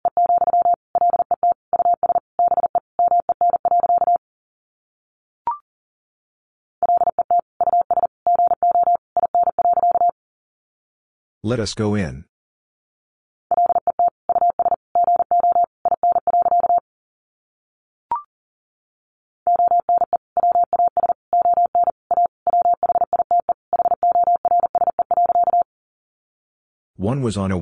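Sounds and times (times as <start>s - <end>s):
Morse code beeps at about 40 words per minute: 0.1s - 4.2s, 6.8s - 10.2s, 13.5s - 16.8s, 19.5s - 25.7s
speech: 11.4s - 12.3s, 27.2s - 27.6s.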